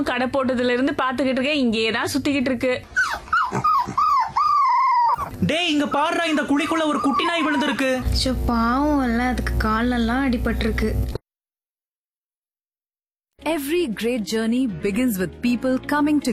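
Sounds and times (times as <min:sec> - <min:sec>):
speech: 0:00.0 - 0:04.0, 0:05.4 - 0:11.2, 0:13.4 - 0:16.3
dog whining near a shop: 0:02.9 - 0:05.4, 0:06.3 - 0:08.0.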